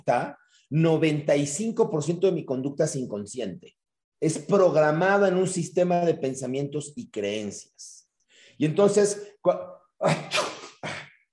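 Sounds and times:
speech: 0.0 - 8.0, 8.6 - 10.5
person sneezing: 10.0 - 11.2.

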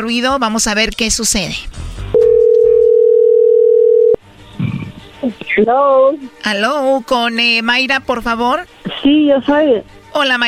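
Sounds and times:
speech: 0.0 - 1.8, 5.2 - 10.4
telephone ringing tone while dialing: 2.2 - 4.2.

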